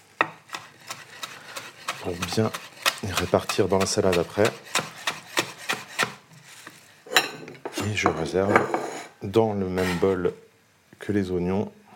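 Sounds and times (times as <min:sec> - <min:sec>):
knife chopping mint leaves on a board: 0:00.2 - 0:06.2
speech: 0:02.0 - 0:04.8, 0:07.8 - 0:10.4, 0:11.0 - 0:11.8.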